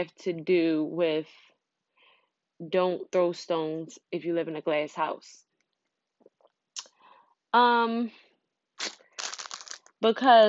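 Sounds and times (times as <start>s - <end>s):
speech: 0.0s - 1.5s, 2.6s - 5.5s, 7.5s - 8.2s, 8.8s - 9.0s, 10.0s - 10.4s
chocolate wrapper crinkling: 8.8s - 10.0s.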